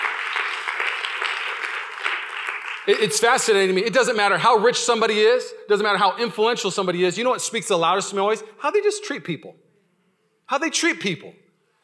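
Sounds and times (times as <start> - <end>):
audience applause: 0.0 - 3.6
speech: 2.9 - 9.7, 10.5 - 11.4.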